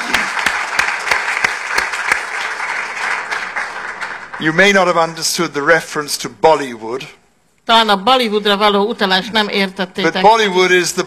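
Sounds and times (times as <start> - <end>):
audience applause: 0.0 - 5.2
speech: 4.4 - 11.0.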